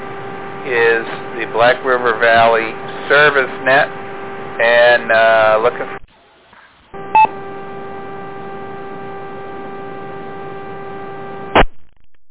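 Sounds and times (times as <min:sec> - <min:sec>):
radio transmitter carrier humming buzz: 0:00.0 - 0:11.7
speech: 0:00.7 - 0:04.0, 0:04.6 - 0:06.0
radio click and tone burst: 0:07.0 - 0:12.0.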